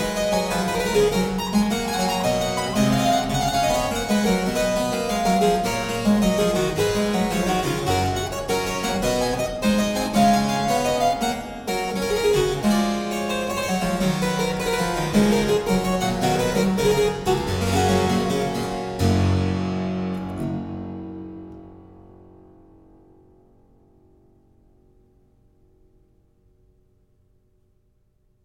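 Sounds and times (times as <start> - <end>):
harpsichord suite in G minor: 0.0 - 22.4.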